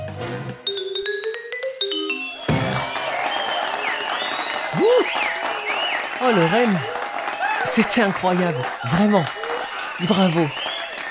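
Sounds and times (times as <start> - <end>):
bell-like tones: 0.6 - 2.8
standing ovation clapping in a club: 2.4 - 11.0
speech: 6.2 - 7.0, 7.6 - 9.4, 10.0 - 10.6.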